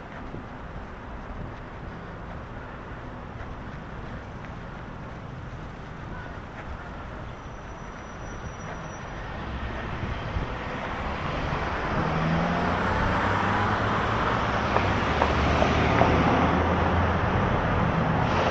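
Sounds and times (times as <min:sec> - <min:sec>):
road traffic: 0:00.0 - 0:18.5.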